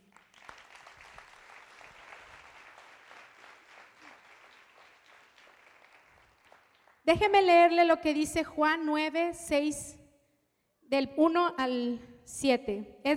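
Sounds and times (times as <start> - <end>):
audience applauding: 0.0 - 7.1
speech: 7.1 - 10.0, 10.9 - 13.1.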